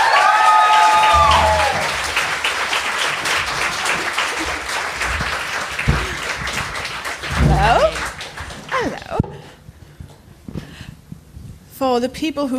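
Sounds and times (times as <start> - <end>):
high whoop or cheer: 0.0 - 2.1
audience applauding: 0.0 - 9.2
speech: 12.0 - 12.5.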